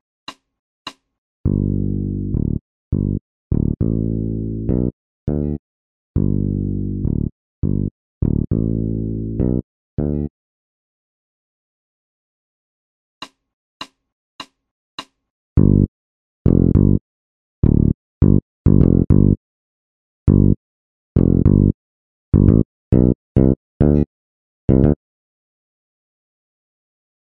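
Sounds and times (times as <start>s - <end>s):
bass loop: 1.5s - 5.6s, 6.2s - 10.3s, 15.6s - 15.9s, 16.5s - 17.0s, 17.6s - 19.4s, 20.3s - 20.6s, 21.2s - 21.7s, 22.4s - 24.1s, 24.7s - 25.0s.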